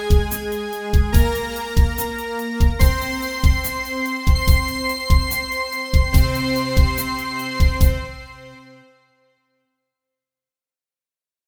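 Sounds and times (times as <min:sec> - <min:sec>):
synth orchestra: 0:00.0 - 0:09.1.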